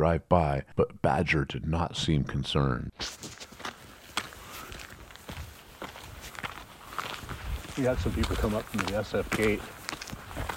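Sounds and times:
speech: 0.0 - 3.5, 7.8 - 9.8
footsteps crunching on gravel: 3.0 - 10.5.

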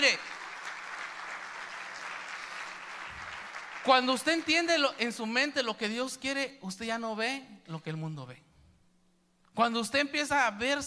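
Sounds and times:
audience applauding: 0.0 - 4.7
speech: 3.9 - 8.5, 9.6 - 10.8.

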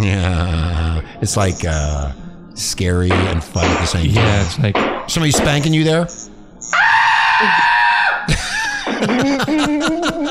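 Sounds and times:
speech: 0.0 - 6.8, 7.4 - 7.7, 8.3 - 10.2
woman screaming loudly: 6.8 - 8.3
laughter: 8.3 - 10.2.

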